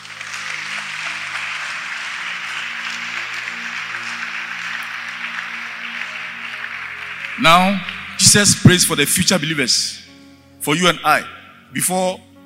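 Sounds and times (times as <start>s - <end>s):
audience clapping: 0.0s - 9.4s
speech: 7.4s - 10.0s, 10.6s - 12.3s.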